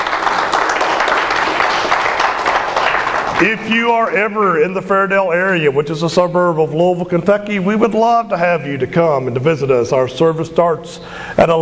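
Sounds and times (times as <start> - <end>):
applause: 0.0 - 4.1
speech: 3.4 - 11.6.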